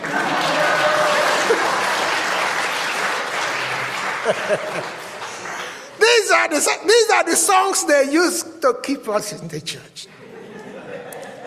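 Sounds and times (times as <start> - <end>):
laughter: 0.0 - 2.4, 3.3 - 6.4, 10.1 - 11.4
audience clapping: 0.0 - 6.6
speech: 4.3 - 5.0, 6.3 - 10.1.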